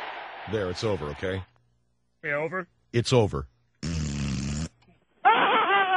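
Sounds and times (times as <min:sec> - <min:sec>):
speech: 0:00.5 - 0:01.5, 0:02.2 - 0:03.9
fart noise: 0:03.8 - 0:05.8.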